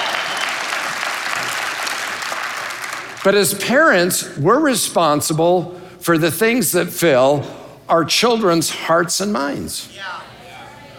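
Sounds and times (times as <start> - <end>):
audience clapping: 0.0 - 3.5
speech: 3.2 - 10.3.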